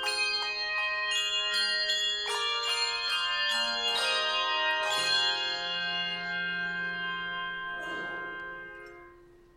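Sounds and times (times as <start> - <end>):
carillon bells playing an offertory: 0.0 - 9.5.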